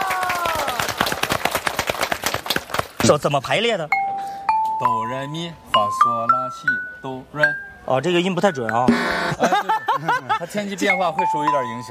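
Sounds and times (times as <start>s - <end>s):
crowd applause: 0.0s - 3.0s
speech: 3.0s - 4.0s, 4.8s - 11.8s
laughter: 9.3s - 10.9s.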